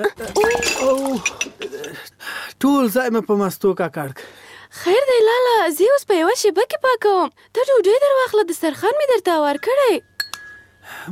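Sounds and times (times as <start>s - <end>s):
speech: 0.0s - 10.1s, 10.9s - 11.0s
stack of dishes and a yogurt bowl clinking: 0.1s - 2.0s, 9.5s - 10.8s.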